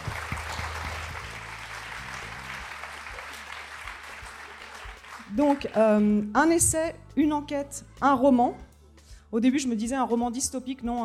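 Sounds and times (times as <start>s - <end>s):
audience applause: 0.0s - 5.8s
speech: 5.3s - 8.7s, 9.3s - 11.0s.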